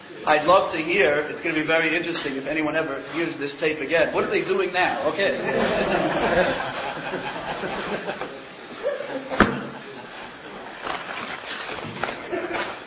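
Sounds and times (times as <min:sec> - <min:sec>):
speech: 0:00.2 - 0:08.4
laughter: 0:05.3 - 0:10.7, 0:12.0 - 0:12.8
torn wrappers of Rebbe card packs crinkling: 0:10.6 - 0:12.8.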